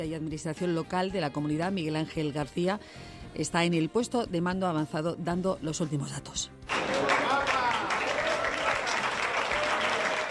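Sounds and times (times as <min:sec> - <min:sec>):
speech: 0:00.0 - 0:07.1
crowd applauding an arriving athlete: 0:06.7 - 0:10.2.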